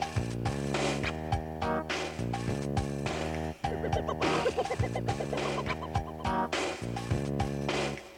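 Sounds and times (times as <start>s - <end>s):
funky bass: 0.1s - 7.9s
wobbling pan flutes: 3.7s - 6.5s.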